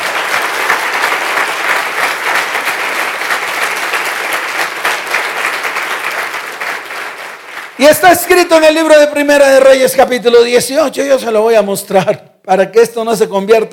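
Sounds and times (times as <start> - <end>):
audience applause: 0.0 - 8.1
speech: 7.8 - 13.7.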